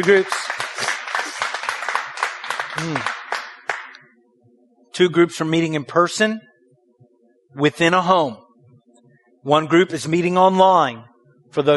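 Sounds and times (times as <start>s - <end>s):
speech: 0.0s - 0.5s, 2.8s - 3.2s, 5.0s - 6.5s, 7.6s - 8.4s, 9.4s - 11.7s
audience clapping: 0.0s - 4.0s.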